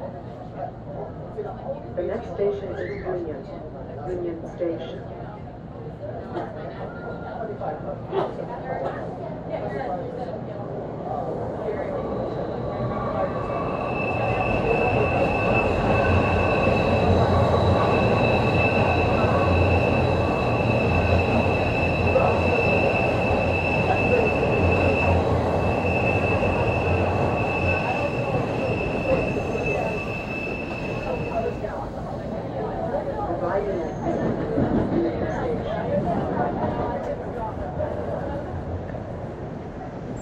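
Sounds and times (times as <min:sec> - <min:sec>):
background chatter: 0:00.0 - 0:40.2
train rumbling past: 0:10.7 - 0:40.2
steady high whine: 0:13.2 - 0:31.8.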